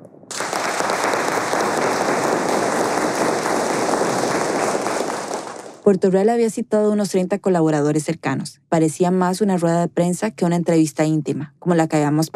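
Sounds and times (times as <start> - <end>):
group applause over telephone: 0.3 - 5.9
speech: 5.8 - 12.3.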